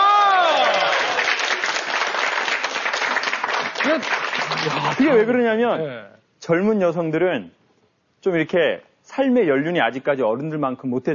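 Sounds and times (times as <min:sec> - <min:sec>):
audience applause: 0:00.0 - 0:05.2
speech: 0:03.9 - 0:07.6, 0:08.2 - 0:11.1.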